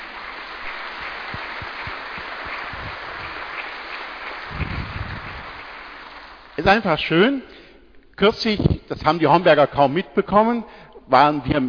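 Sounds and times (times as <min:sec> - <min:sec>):
audience clapping: 0:00.0 - 0:07.0
speech: 0:06.6 - 0:07.5, 0:08.2 - 0:11.6.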